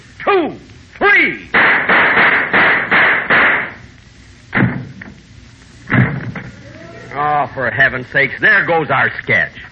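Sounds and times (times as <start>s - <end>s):
speech: 0.3s - 0.6s, 7.6s - 9.6s
gunshot sound effects in a radio comedy sketch: 1.6s - 3.8s, 4.5s - 5.0s, 5.9s - 6.4s.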